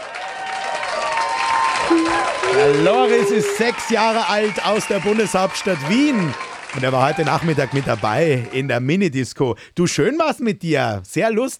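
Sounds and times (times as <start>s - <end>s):
applause: 0.0s - 8.6s
speech: 1.9s - 11.5s.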